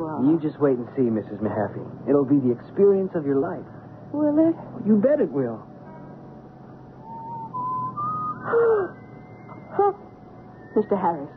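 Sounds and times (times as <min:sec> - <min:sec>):
speech: 0:00.2 - 0:05.7, 0:08.5 - 0:09.0, 0:09.8 - 0:10.0, 0:10.8 - 0:11.3
thin steady whistle: 0:07.0 - 0:11.3.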